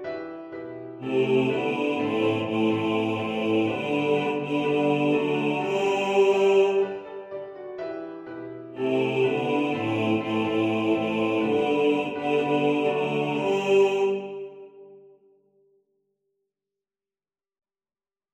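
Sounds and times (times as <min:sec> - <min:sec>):
piano: 0:00.0 - 0:14.8
male choir singing: 0:01.0 - 0:07.1, 0:08.8 - 0:15.0.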